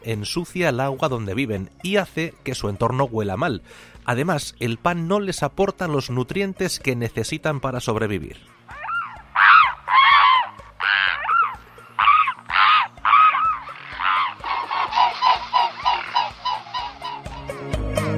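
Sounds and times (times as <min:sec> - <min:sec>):
speech: 0:00.0 - 0:08.8
swans calling: 0:08.7 - 0:18.0.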